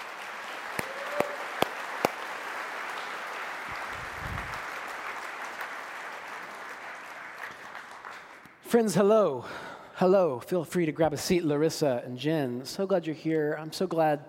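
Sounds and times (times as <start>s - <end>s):
church audience applause as two speakers come up to the stage: 0.0s - 8.6s
speech: 8.7s - 14.2s.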